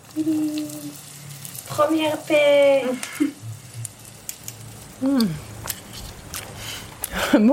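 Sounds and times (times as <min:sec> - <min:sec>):
first piece of food sizzling in heated oil: 0:00.0 - 0:07.5
speech: 0:00.2 - 0:01.1, 0:01.7 - 0:03.4, 0:05.0 - 0:05.5, 0:07.3 - 0:07.5.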